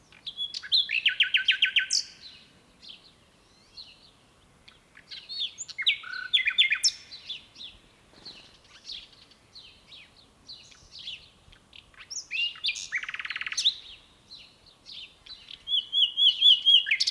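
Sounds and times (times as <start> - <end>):
common nightingale singing: 0.0 - 17.1.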